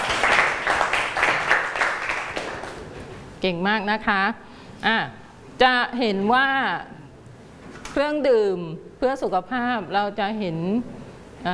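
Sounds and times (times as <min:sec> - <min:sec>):
classroom applause: 0:00.0 - 0:02.9
speech: 0:03.4 - 0:07.0, 0:07.9 - 0:11.5.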